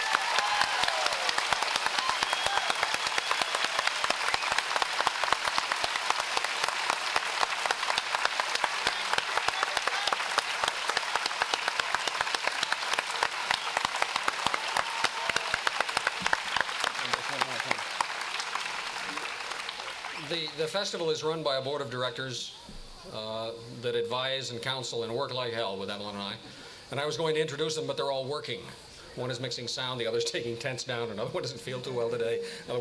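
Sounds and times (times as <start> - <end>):
applause: 0.0 - 20.6
speech: 20.6 - 32.8.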